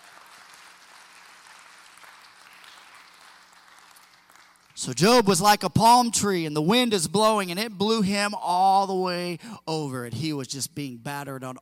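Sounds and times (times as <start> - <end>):
audience hand clapping: 0.0 - 5.0
speech: 4.8 - 11.6.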